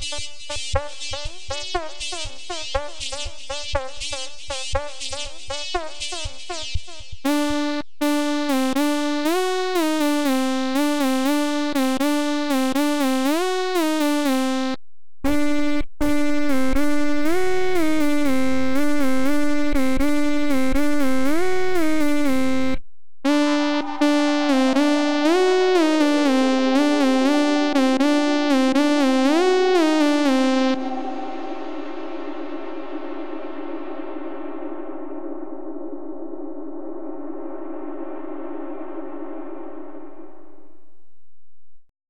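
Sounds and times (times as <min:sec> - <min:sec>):
synth lead: 0:07.3 - 0:37.2.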